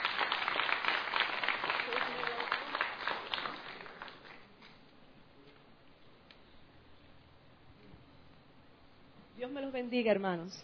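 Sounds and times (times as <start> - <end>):
audience applause: 0.0 - 4.4
speech: 9.7 - 10.6.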